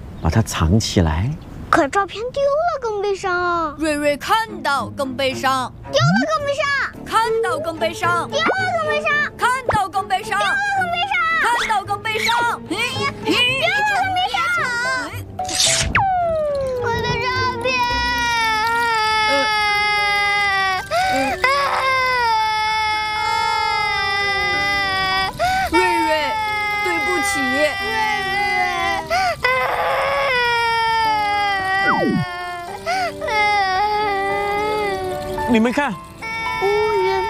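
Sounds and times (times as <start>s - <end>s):
speech: 0.2s - 14.4s, 35.5s - 36.0s
young child crying and wailing: 10.2s - 15.2s, 16.0s - 35.5s, 36.2s - 37.2s.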